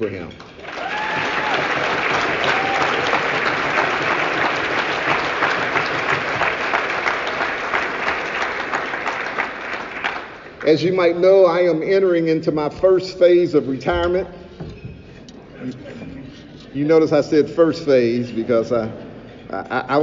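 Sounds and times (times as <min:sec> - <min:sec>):
speech: 0:00.0 - 0:00.5, 0:10.6 - 0:14.4, 0:16.8 - 0:20.0
audience applause: 0:00.5 - 0:10.6.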